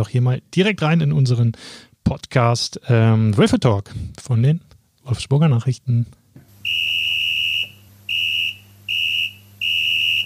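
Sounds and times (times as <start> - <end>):
speech: 0.0 - 6.8
referee's final whistle: 6.6 - 10.2.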